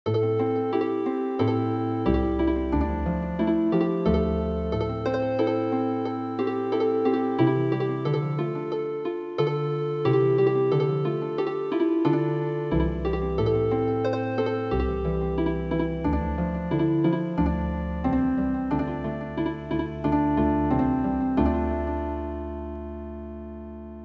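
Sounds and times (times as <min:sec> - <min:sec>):
traditional healing harp music: 0:00.1 - 0:23.8.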